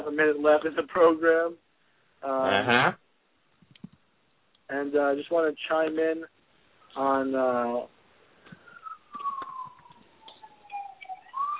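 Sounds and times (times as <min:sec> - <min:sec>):
speech: 0:00.2 - 0:01.6, 0:02.2 - 0:03.0, 0:04.7 - 0:08.0
siren passing by in Queens, New York: 0:08.7 - 0:11.5.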